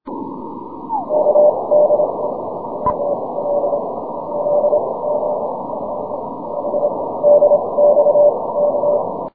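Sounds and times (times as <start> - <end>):
6m CW morse code signal: 0.9 - 5.4, 6.6 - 9.1.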